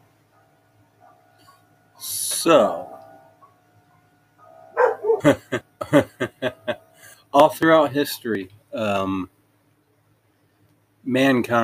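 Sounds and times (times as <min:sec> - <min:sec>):
dogs barking: 0:00.2 - 0:01.8, 0:02.9 - 0:05.6
speech: 0:02.4 - 0:02.8, 0:07.6 - 0:09.4, 0:11.1 - 0:11.6
laughter: 0:05.2 - 0:07.0.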